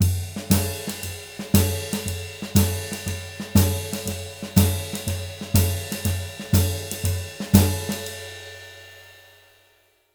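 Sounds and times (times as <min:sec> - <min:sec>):
shuffle beat: 0:00.3 - 0:08.1.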